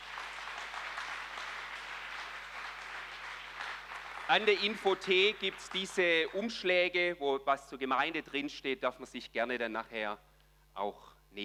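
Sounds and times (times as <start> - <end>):
audience applause: 0.0 - 6.3
speech: 4.3 - 11.4.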